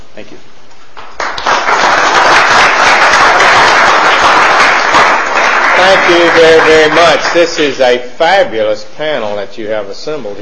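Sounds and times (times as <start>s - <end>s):
speech: 0.2s - 1.1s, 5.8s - 10.4s
audience applause: 1.0s - 7.8s.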